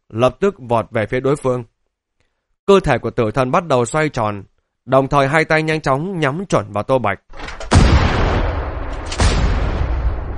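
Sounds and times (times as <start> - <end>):
speech: 0.1 - 1.7, 2.7 - 7.6
gunfire: 7.4 - 10.3.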